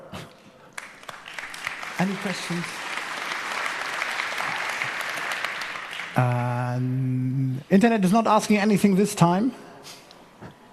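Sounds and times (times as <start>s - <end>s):
audience applause: 0.7s - 6.8s
speech: 2.0s - 2.8s, 6.2s - 10.0s.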